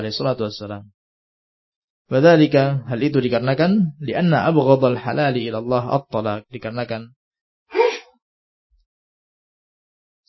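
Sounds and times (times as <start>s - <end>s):
speech: 0.0s - 1.0s, 2.1s - 7.2s
person sneezing during an Islamic religious study lecture: 7.7s - 8.1s.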